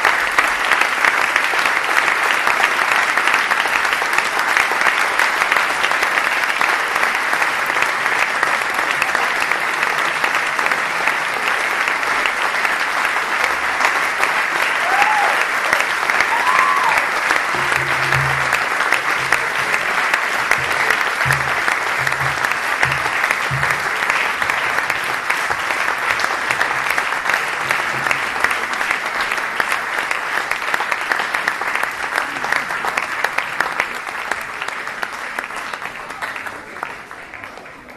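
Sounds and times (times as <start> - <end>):
audience applause: 0.0 - 37.9.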